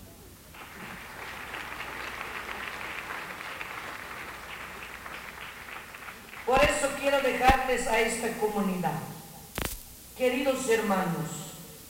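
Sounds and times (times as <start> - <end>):
crowd applauding: 0.5 - 7.6
speech: 6.5 - 9.2, 10.2 - 11.4.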